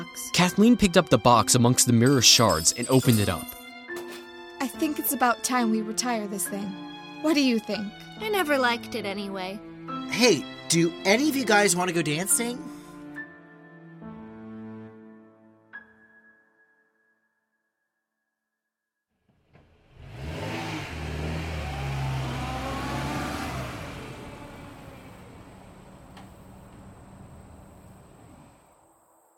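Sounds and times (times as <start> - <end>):
speech: 0.4 - 3.6, 4.8 - 12.8
car engine starting and accelerating as it drives away: 19.4 - 28.7.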